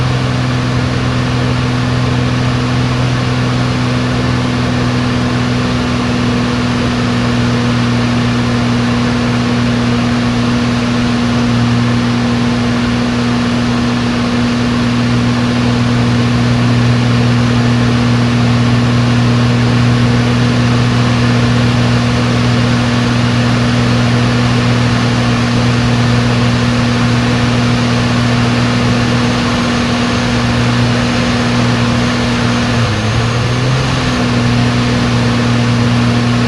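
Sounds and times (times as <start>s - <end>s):
Extra 330LX aerobatic plane engine at high, medium and low rpm, onboard: 0.0s - 36.4s.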